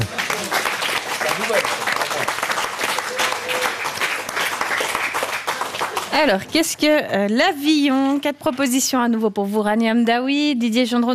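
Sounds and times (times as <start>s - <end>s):
studio audience applause: 0.0s - 6.4s
speech: 6.2s - 11.1s.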